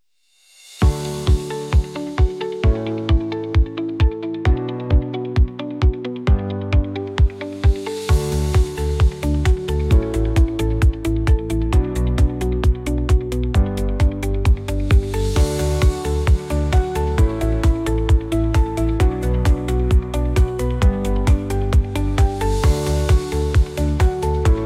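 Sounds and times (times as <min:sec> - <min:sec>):
techno tango music: 0:00.8 - 0:24.6.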